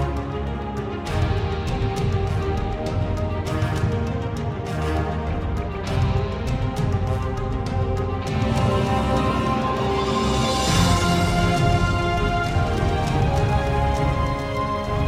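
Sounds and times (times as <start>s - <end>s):
fight music: 0.0s - 15.0s.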